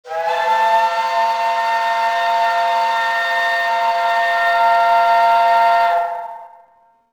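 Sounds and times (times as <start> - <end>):
ship horn: 0.0 - 7.0.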